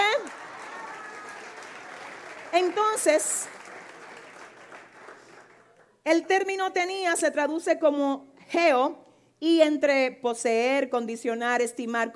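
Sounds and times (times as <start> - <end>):
audience applause: 0.2 - 5.8
speech: 2.6 - 3.6, 6.0 - 12.1.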